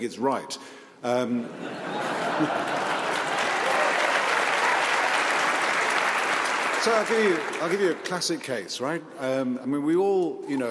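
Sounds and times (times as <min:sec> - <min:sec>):
speech: 0:00.0 - 0:03.0, 0:06.8 - 0:10.6
laughter: 0:01.3 - 0:03.7
audience applause: 0:01.8 - 0:08.5.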